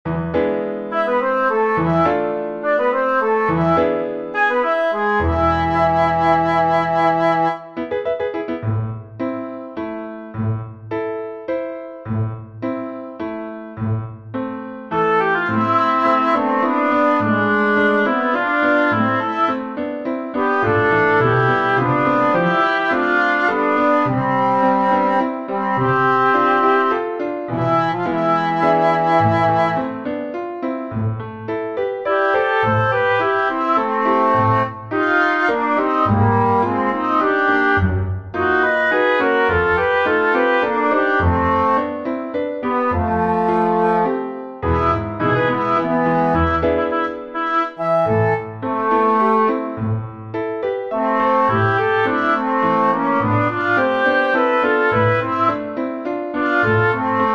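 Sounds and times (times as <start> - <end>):
piano: 0.0 - 57.3.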